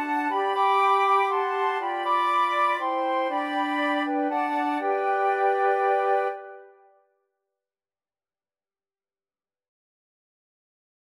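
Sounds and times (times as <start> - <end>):
flute quartet: 0.0 - 6.9.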